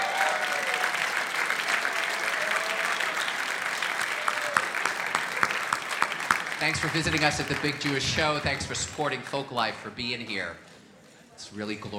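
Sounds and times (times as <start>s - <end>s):
audience applause: 0.0s - 8.8s
speech: 6.6s - 10.7s, 11.4s - 11.9s.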